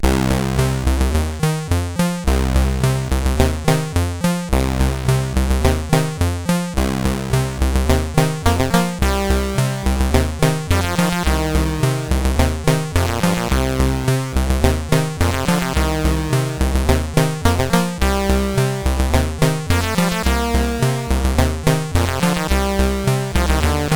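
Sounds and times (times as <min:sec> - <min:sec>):
tape version on a CSG8580R5 chip: 0:00.0 - 0:23.9.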